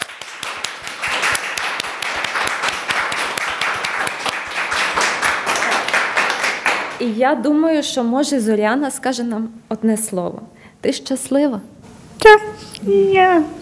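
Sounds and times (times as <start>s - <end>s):
crowd applauding loudly: 0.0s - 7.0s
speech: 7.0s - 13.5s.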